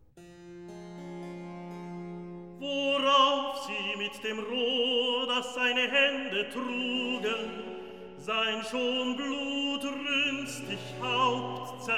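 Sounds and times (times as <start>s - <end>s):
recitative singing: 2.6s - 11.9s.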